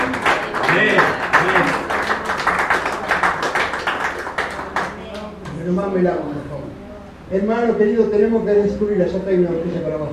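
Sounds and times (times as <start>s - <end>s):
audience applauding: 0.0s - 5.4s
speech: 5.8s - 6.4s, 7.3s - 10.1s.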